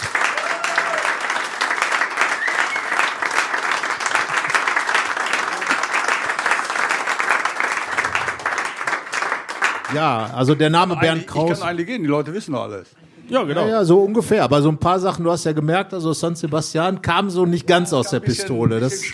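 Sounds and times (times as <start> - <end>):
audience applause: 0.0 - 10.6
speech: 9.9 - 19.1.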